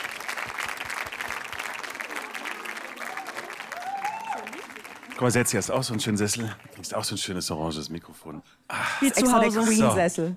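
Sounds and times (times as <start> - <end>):
crowd applauding: 0.0 - 6.9
speech: 5.2 - 10.3.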